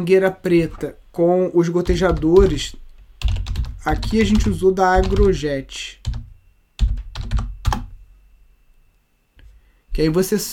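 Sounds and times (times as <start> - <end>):
speech: 0.0 - 6.2, 10.0 - 10.5
computer keyboard typing: 1.8 - 8.0.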